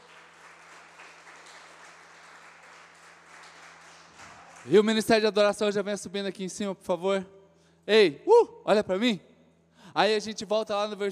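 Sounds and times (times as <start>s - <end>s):
audience applauding loudly: 0.0s - 5.0s
speech: 4.6s - 9.3s, 10.0s - 11.1s.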